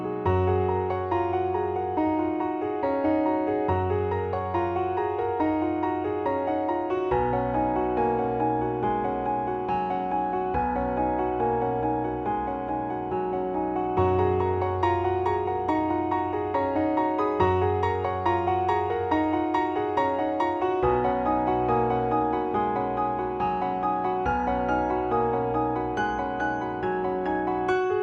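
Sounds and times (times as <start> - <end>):
hopeful instrumental music: 0.2 - 28.0.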